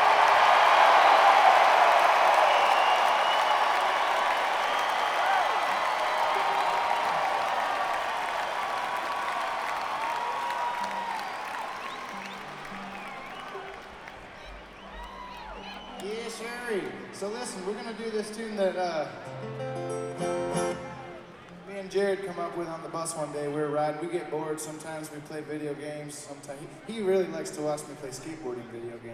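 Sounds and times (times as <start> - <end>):
crowd applauding: 0.0 - 18.4
crowd cheering and shouting: 0.0 - 22.6
speech: 17.7 - 19.4, 21.9 - 29.1.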